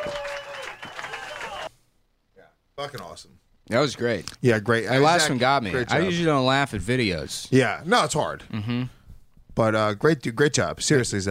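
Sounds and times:
audience applause: 0:00.0 - 0:01.7
speech: 0:02.8 - 0:09.0, 0:09.6 - 0:11.2.

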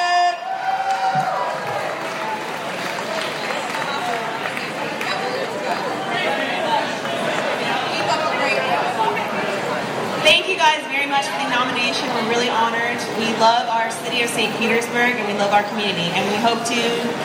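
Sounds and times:
scattered cheers: 0:00.0 - 0:04.8
crowd chatter: 0:00.0 - 0:17.2
audience applause: 0:00.5 - 0:08.4
speech: 0:12.7 - 0:17.2.

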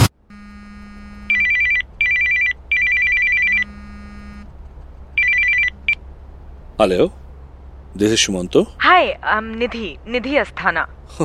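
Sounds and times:
telephone ringing: 0:00.3 - 0:04.5, 0:05.2 - 0:06.0
speech: 0:06.8 - 0:07.2, 0:07.9 - 0:11.2.

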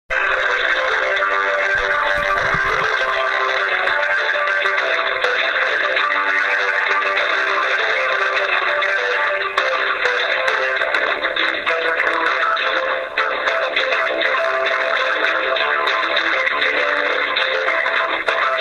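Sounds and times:
First Great Western Trains telephone hold music: 0:00.1 - 0:18.6.

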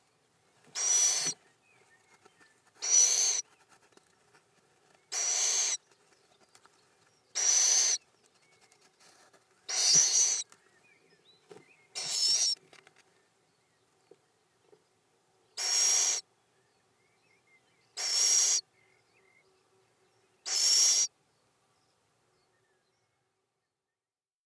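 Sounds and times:
little owl feeding visit calls: 0:00.7 - 0:01.4, 0:02.8 - 0:03.5, 0:05.0 - 0:05.9, 0:07.3 - 0:08.1, 0:09.7 - 0:10.6, 0:11.9 - 0:12.6, 0:15.6 - 0:16.3, 0:17.9 - 0:18.7, 0:20.4 - 0:21.2.

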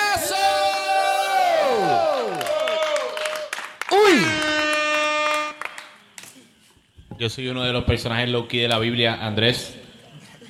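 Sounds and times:
comedy club audience cheering and whooping: 0:00.2 - 0:05.1
comedy club audience scattered clapping: 0:02.3 - 0:06.5
speech: 0:07.2 - 0:09.8.

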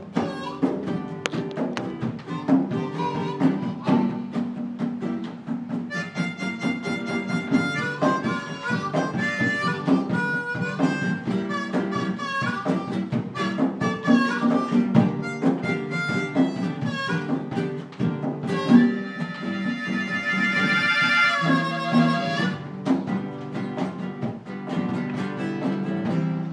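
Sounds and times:
drums: 0:00.0 - 0:26.5.

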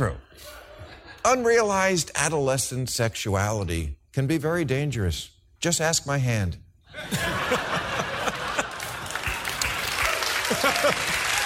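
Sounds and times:
laughter: 0:00.3 - 0:01.2, 0:06.9 - 0:11.4
speech: 0:01.2 - 0:07.6
audience applause: 0:07.9 - 0:11.4.

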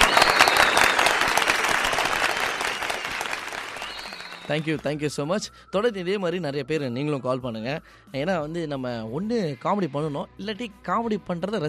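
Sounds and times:
applause from a group of people: 0:00.0 - 0:04.8
speech: 0:04.5 - 0:11.6.

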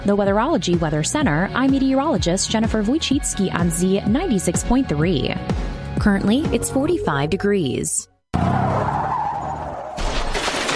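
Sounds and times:
speech: 0:00.0 - 0:08.6
car tires screeching: 0:08.4 - 0:10.6.

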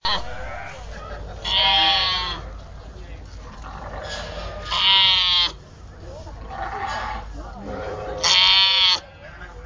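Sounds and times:
sheep bleating: 0:01.4 - 0:02.5, 0:04.6 - 0:05.6, 0:08.0 - 0:09.0.

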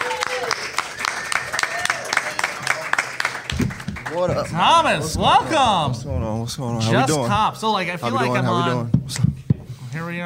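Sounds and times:
audience clapping to welcome a guest onto a show: 0:00.0 - 0:05.9
speech: 0:04.1 - 0:09.3, 0:10.0 - 0:10.2.

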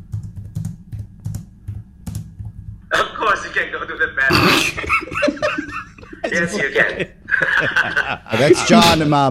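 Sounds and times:
typing on a computer keyboard: 0:00.0 - 0:02.8
speech: 0:02.9 - 0:05.6, 0:06.2 - 0:09.2
laughter: 0:04.7 - 0:09.1.

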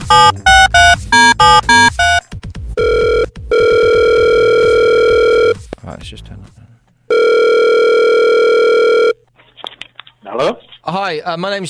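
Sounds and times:
telephone dialing beeps: 0:00.0 - 0:02.2, 0:02.8 - 0:05.6, 0:07.1 - 0:09.2
speech: 0:00.1 - 0:01.6, 0:11.2 - 0:11.6.

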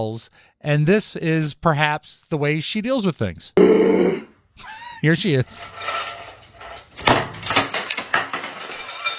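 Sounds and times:
speech: 0:00.0 - 0:06.1
bucket of ice thrown hard into a bathtub: 0:07.0 - 0:09.1.

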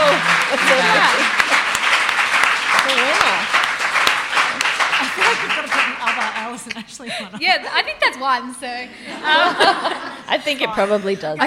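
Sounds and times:
laughter: 0:00.0 - 0:01.9, 0:04.5 - 0:08.1, 0:08.9 - 0:11.4
group clapping: 0:00.0 - 0:07.1
speech: 0:06.8 - 0:11.4.

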